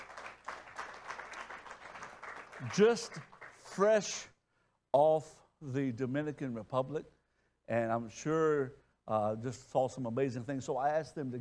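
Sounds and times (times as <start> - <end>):
crowd applauding: 0.0 - 4.0
speech: 2.6 - 4.3, 4.9 - 11.3.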